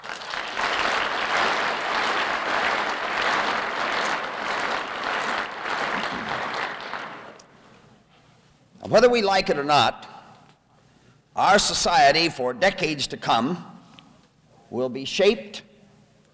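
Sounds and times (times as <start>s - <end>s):
audience applause: 0.0s - 7.4s
speech: 8.9s - 10.1s, 11.4s - 13.7s, 14.7s - 15.6s.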